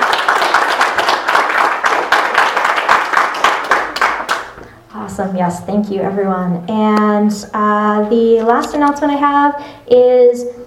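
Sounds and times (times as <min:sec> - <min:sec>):
audience applause: 0:00.0 - 0:04.6
speech: 0:05.2 - 0:10.6.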